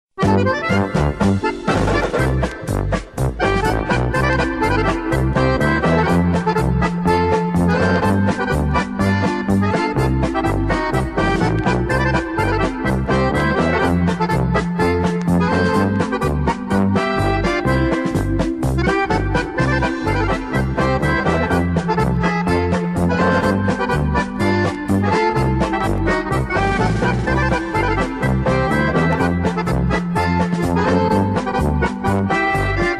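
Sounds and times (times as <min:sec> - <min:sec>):
instrumental polka with bells: 0:00.2 - 0:32.9.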